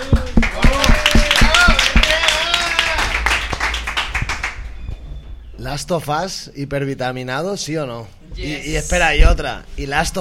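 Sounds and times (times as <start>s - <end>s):
applause: 0.0s - 4.6s
speech: 5.8s - 10.1s.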